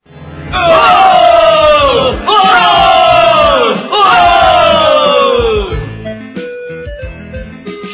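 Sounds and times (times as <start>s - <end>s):
excited crowd cheering and shouting: 0.5s - 5.8s.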